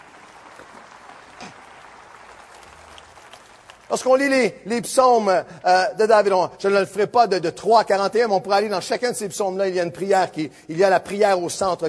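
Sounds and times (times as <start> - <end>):
audience applauding: 0.0 - 4.4
speech: 3.9 - 11.8.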